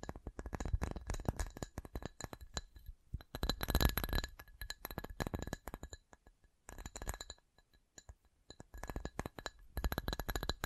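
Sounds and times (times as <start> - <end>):
glassy tapping: 0.0 - 10.6.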